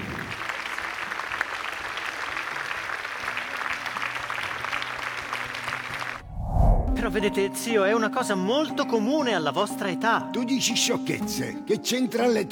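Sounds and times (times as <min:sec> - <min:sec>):
audience applause: 0:00.0 - 0:06.2
speech: 0:07.1 - 0:12.4.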